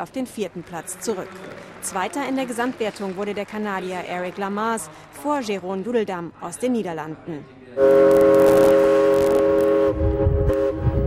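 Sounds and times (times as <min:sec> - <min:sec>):
speech: 0:00.0 - 0:08.7
historic paddle steamer horn tooting: 0:07.8 - 0:11.0.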